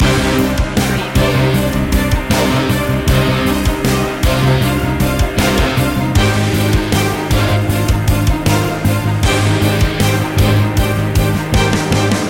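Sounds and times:
heavy dramatic music loop: 0.0s - 12.2s.

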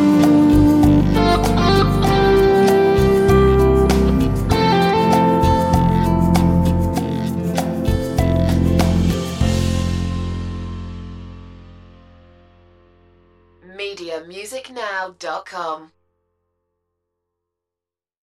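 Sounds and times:
romantic guitar music: 0.0s - 13.5s.

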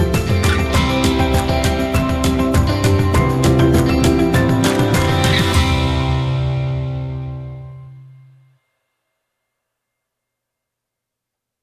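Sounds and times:
instrumental music without vocals: 0.0s - 8.6s.

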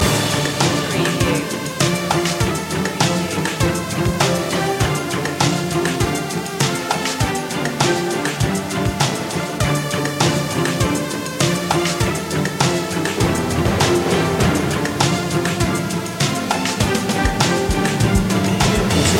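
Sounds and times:
spooky music loop: 0.0s - 19.1s.

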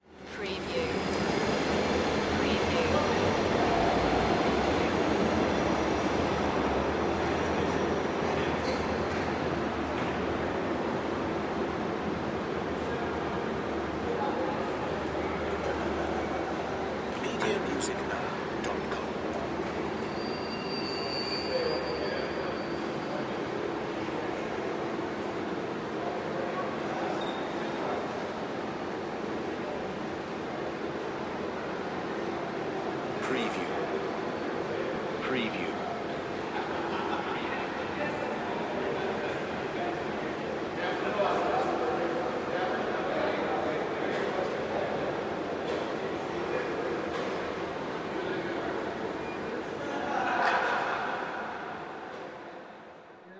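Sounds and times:
train station ambience in Denmark: 0.0s - 53.3s
laughter: 36.4s - 38.0s, 49.8s - 51.6s.

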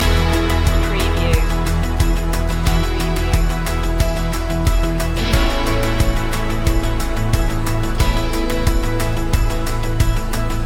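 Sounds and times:
music loop: 0.0s - 10.6s.

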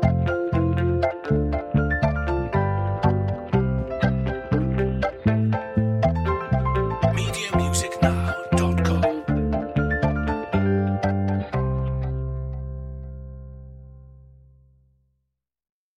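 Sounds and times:
joyful pop music without drums: 0.0s - 11.7s.

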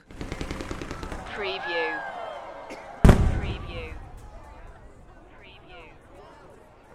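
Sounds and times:
massive firework: 0.1s - 1.7s, 3.0s - 5.2s.

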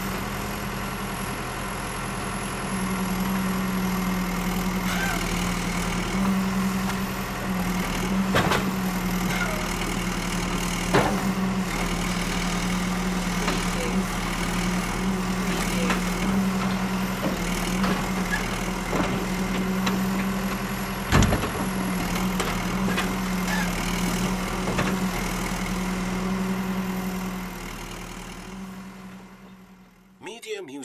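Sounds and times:
engine running high and low: 0.0s - 30.2s.

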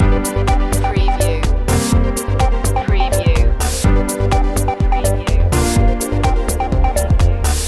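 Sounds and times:
groovy background music loop: 0.0s - 7.6s.

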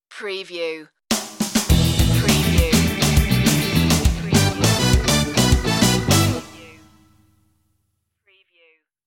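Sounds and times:
chat show stinger: 2.0s - 7.1s.

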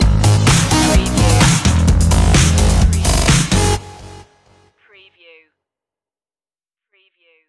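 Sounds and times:
robo-disco stinger: 0.2s - 3.8s.

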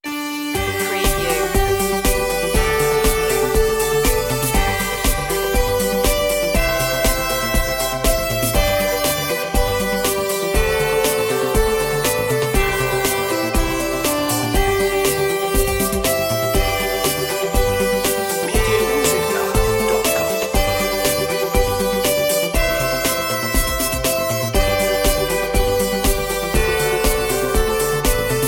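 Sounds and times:
synthesized folk tune melody: 0.0s - 28.4s.

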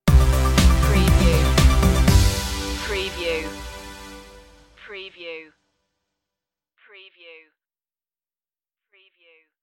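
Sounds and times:
musical stinger: 0.1s - 4.8s.

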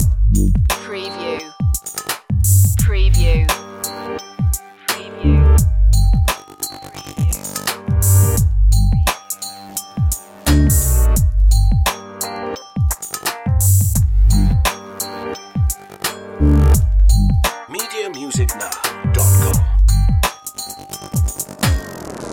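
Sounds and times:
music loop: 0.0s - 22.3s.

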